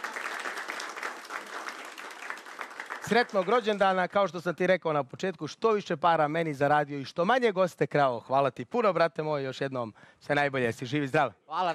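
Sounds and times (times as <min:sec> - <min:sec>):
gathered crowd clapping: 0:00.0 - 0:04.4
speech: 0:03.1 - 0:11.7.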